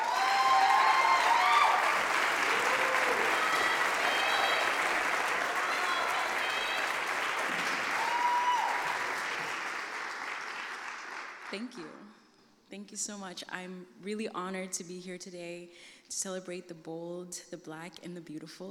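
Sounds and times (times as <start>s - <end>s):
audience applause: 0.0s - 11.6s
speech: 11.6s - 12.1s, 12.7s - 18.6s.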